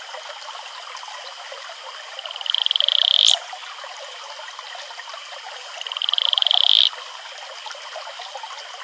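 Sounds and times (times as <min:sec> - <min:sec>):
male Atelopus franciscus advertisement call pulsed trill: 0:02.3 - 0:03.4, 0:05.8 - 0:06.9.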